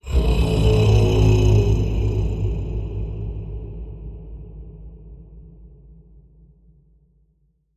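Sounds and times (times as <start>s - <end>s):
deep predator bellow with pitch bend: 0.0s - 4.7s.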